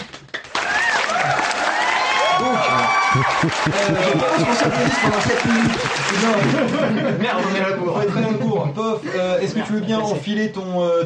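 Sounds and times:
group applauding: 0.0 - 6.9
people cheering and whooping: 0.6 - 6.7
laughter: 2.4 - 10.0
speech: 3.2 - 11.0.

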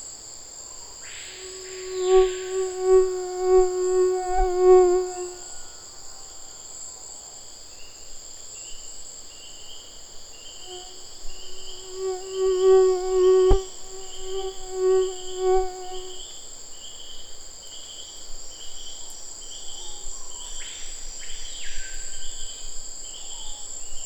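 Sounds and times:
high-pitched insect chorus: 0.0 - 24.0
mosquito whining: 1.3 - 5.6, 10.7 - 16.2.

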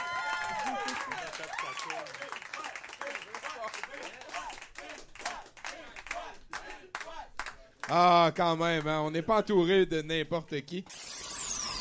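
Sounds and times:
cheers and whoops: 0.0 - 2.3
crowd applause: 0.0 - 7.5
speech: 1.8 - 2.7, 7.9 - 11.1.

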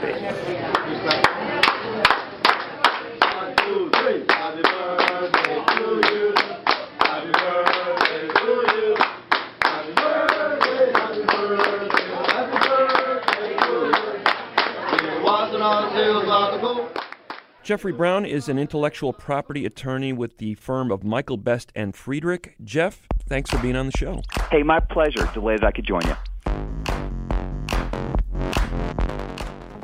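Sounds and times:
restaurant wait staff clapping: 0.6 - 15.8, 16.9 - 17.6, 23.4 - 29.8
restaurant staff chanting a birthday song: 1.2 - 17.1
speech: 17.7 - 26.2.

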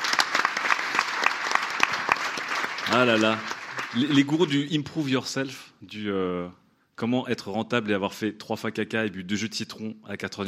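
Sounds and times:
light audience applause for a guest: 0.0 - 4.6
speech: 2.9 - 10.4.

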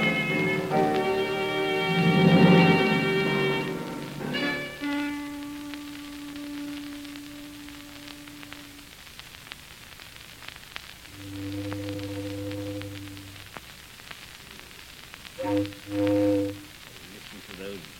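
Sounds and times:
mournful foghorn sounding in fog: 0.0 - 8.9, 11.1 - 13.6, 15.4 - 17.0.

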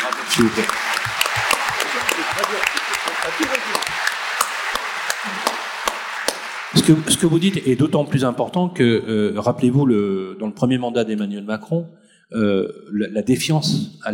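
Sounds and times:
audience applauding: 0.0 - 8.3
speech: 0.4 - 1.2, 2.4 - 4.2, 5.2 - 5.6, 6.7 - 14.1.

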